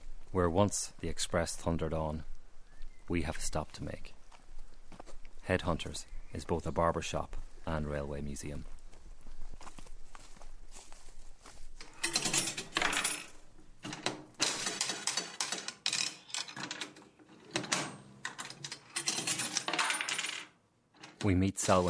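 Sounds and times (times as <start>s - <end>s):
speech: 0.3s - 2.3s, 3.1s - 4.2s, 5.5s - 8.8s, 21.2s - 21.8s
metallic coins jangling: 11.8s - 13.4s, 17.7s - 21.2s
penny slot machine clattering: 11.9s - 13.3s, 13.9s - 21.3s.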